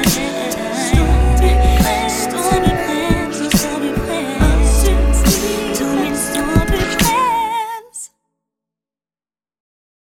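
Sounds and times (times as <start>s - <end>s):
beatbox ballad: 0.0s - 7.4s.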